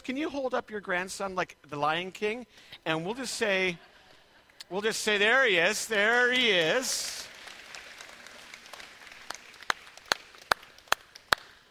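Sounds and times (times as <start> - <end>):
speech: 0.0 - 3.9, 4.7 - 7.3
audience applauding: 5.1 - 11.7.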